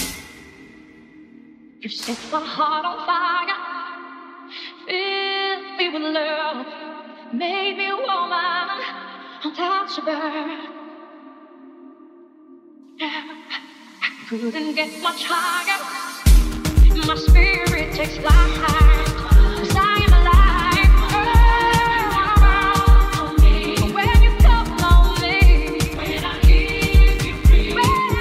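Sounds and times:
afro three-step remix: 0.0s - 0.8s, 13.5s - 28.1s.

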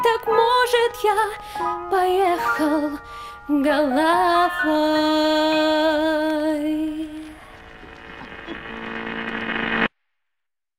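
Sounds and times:
woman singing a cover in Russian: 0.0s - 7.5s.

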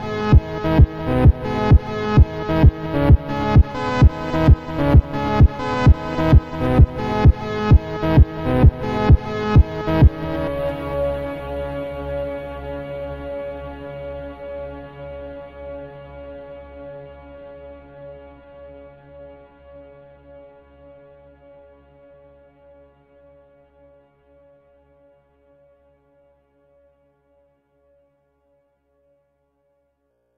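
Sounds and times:
automotivo funk with boosted bass: 0.0s - 12.4s.

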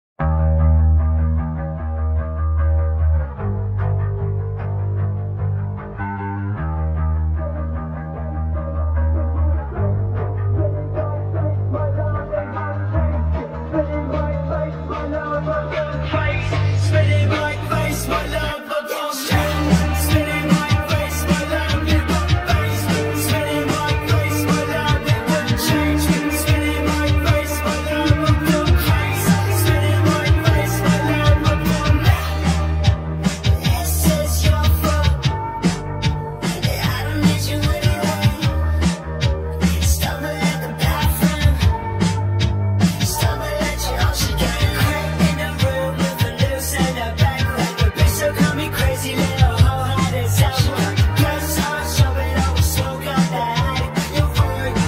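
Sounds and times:
slowed reverb music: 0.2s - 54.8s.

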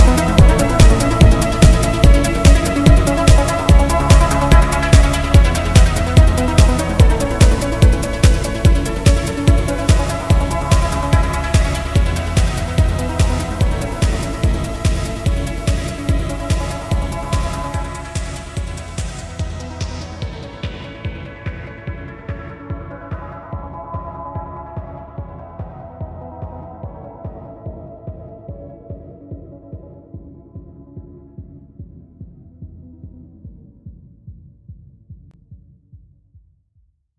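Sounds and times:
sped-up audio with reverb: 0.0s - 28.3s.

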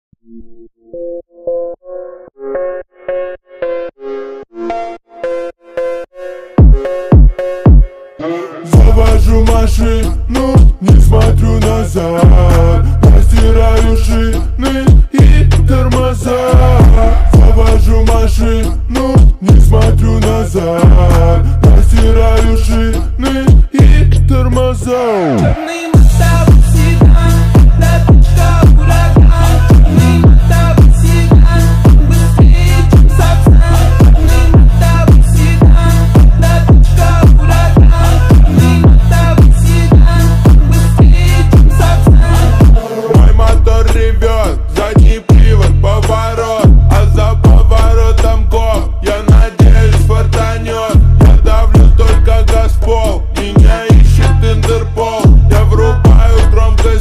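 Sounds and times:
bass: 8.7s - 56.9s.

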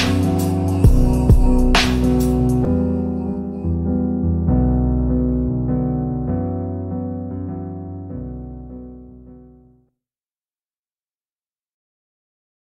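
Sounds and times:
slowed reverb music: 0.0s - 9.4s.

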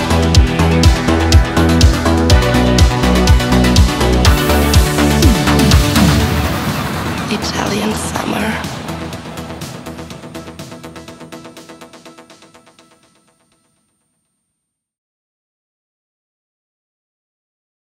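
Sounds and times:
Italo disco remix: 0.0s - 12.4s.

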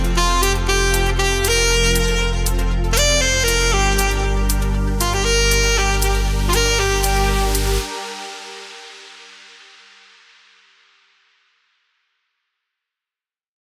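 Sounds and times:
saxophone house music: 0.0s - 9.9s.

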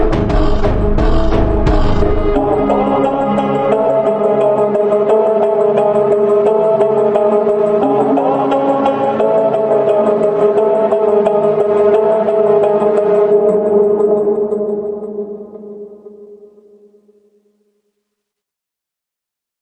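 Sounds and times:
funk music: 0.0s - 14.9s.

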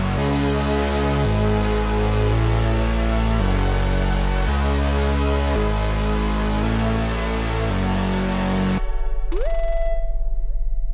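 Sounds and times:
slowed instrumental music with reverb: 0.0s - 10.8s.

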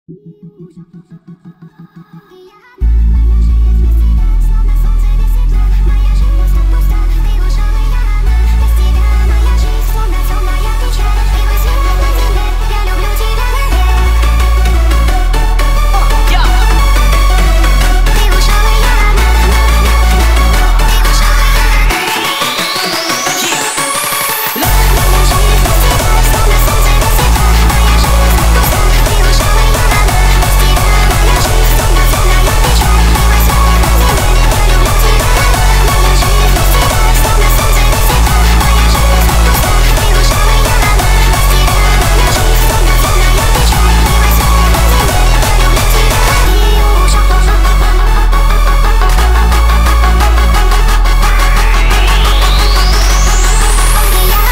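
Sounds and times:
hardstyle remix: 0.1s - 54.5s.

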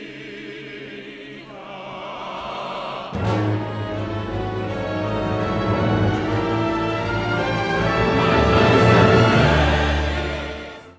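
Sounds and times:
orchestral music: 2.6s - 10.9s.

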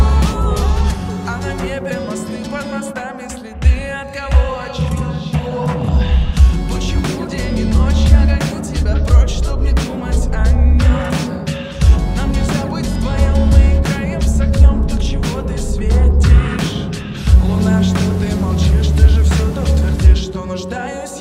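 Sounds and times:
bass-boosted sound with reverb: 0.0s - 2.7s, 5.8s - 20.8s.

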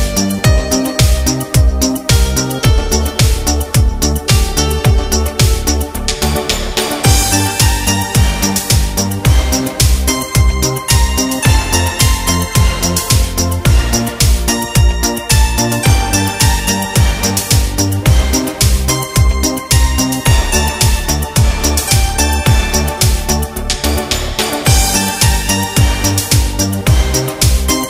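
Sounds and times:
relaxing instrumental music in Korg Pa4X style: 0.0s - 27.8s.

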